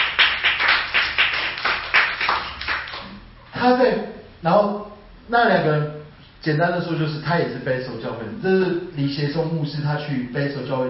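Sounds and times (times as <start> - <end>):
audience clapping: 0.0 - 3.2
speech: 3.6 - 10.8.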